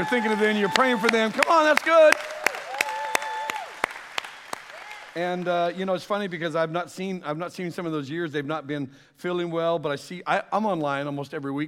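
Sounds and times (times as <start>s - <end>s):
speech: 0.0s - 2.4s, 5.2s - 11.6s
church congregation clapping to welcome online members: 0.0s - 6.0s.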